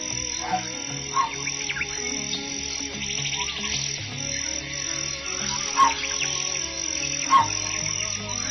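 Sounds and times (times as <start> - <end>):
jungle bird call made with a saw: 0.0 - 8.5.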